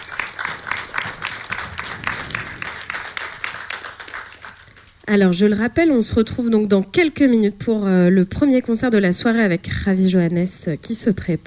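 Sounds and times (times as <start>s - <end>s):
audience applause: 0.0s - 5.0s
speech: 5.1s - 11.4s.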